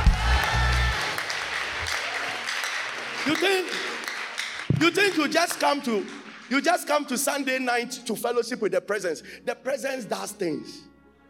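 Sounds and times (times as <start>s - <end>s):
people shouting: 0.0s - 1.2s
audience clapping: 0.0s - 7.7s
speech: 3.3s - 4.0s, 4.8s - 10.9s.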